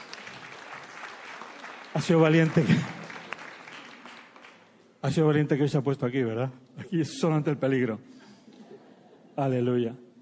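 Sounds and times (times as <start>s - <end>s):
audience applause: 0.0s - 4.7s
speech: 2.0s - 3.0s, 5.0s - 8.1s, 9.4s - 10.0s.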